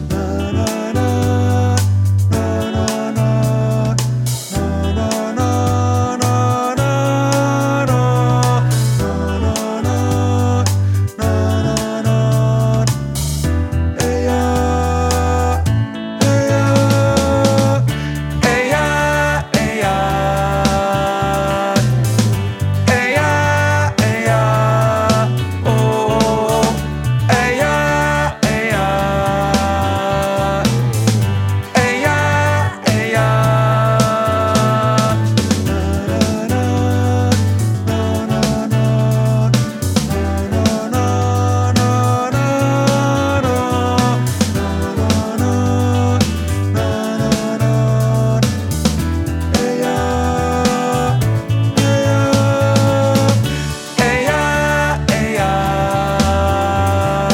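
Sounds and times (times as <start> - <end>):
tenor singing: 0.1 - 57.3.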